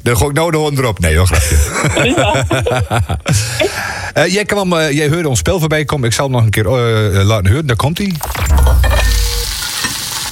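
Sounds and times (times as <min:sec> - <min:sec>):
speech: 0:00.0 - 0:09.0
laughter: 0:01.1 - 0:03.8
egg frying in a pan: 0:08.7 - 0:10.2.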